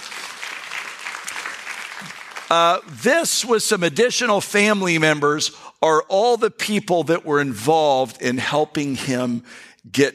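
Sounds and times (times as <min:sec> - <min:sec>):
audience applause: 0:00.0 - 0:03.0
speech: 0:02.0 - 0:10.1.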